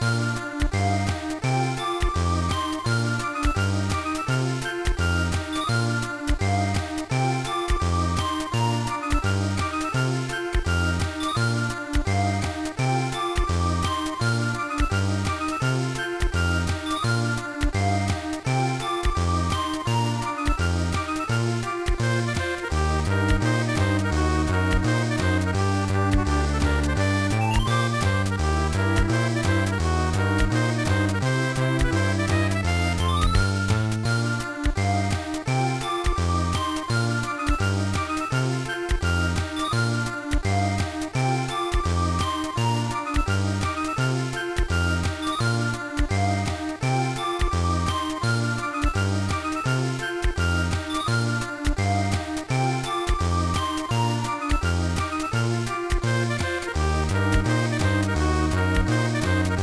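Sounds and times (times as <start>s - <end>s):
background music: 0.0s - 59.6s.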